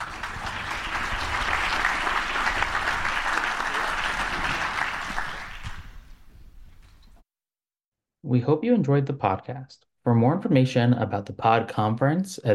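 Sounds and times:
roomful of people clapping for a panel: 0.0s - 6.2s
speech: 8.3s - 12.5s.

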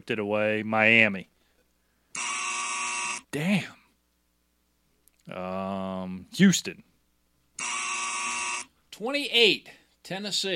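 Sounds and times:
speech: 0.0s - 1.3s, 3.3s - 3.8s, 5.3s - 6.9s, 9.0s - 10.5s
quiz buzzer harsh electronic buzz: 2.2s - 3.3s, 7.6s - 8.7s.

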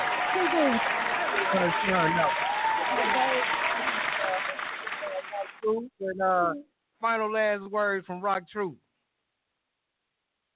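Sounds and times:
audience applause: 0.0s - 5.6s
speech: 0.4s - 3.6s, 5.6s - 8.8s.

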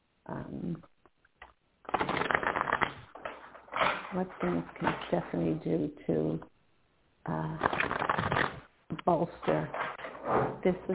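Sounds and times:
speech: 0.3s - 0.9s, 4.1s - 6.5s, 7.2s - 7.8s, 9.0s - 10.9s
playing cards shuffling: 1.9s - 5.1s, 7.6s - 8.6s.

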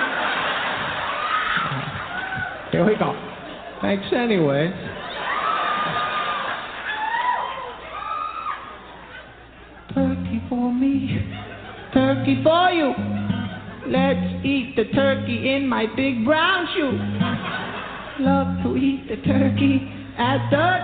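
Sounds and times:
audience clapping: 0.0s - 3.5s, 5.1s - 7.9s
audience cheering: 0.0s - 3.8s, 4.9s - 9.3s
laughter: 0.0s - 3.8s, 4.8s - 7.1s, 8.6s - 10.2s, 11.0s - 14.2s, 16.7s - 18.8s
speech: 2.7s - 4.9s, 13.9s - 17.3s, 18.2s - 20.8s.

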